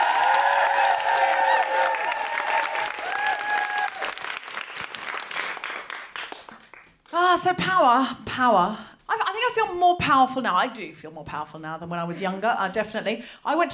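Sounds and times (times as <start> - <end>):
audience whooping: 0.0 - 4.5
audience applause welcoming a comedian on stage: 0.0 - 7.0
speech: 7.4 - 8.9, 9.5 - 13.7.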